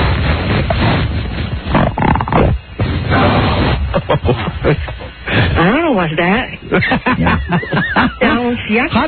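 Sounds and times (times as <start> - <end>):
loud drawn-out fart: 0.6 - 3.9
laughter: 3.8 - 5.6, 6.6 - 8.9
speech: 6.0 - 7.8, 8.7 - 9.0.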